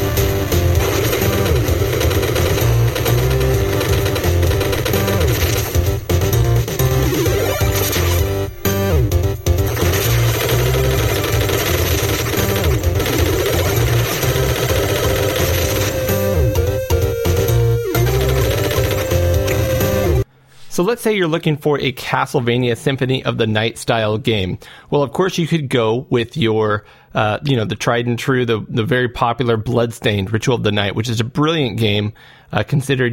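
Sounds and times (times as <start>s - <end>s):
chiptune music from a retro run-and-gun shooter: 0.0s - 20.3s
speech: 20.8s - 33.1s.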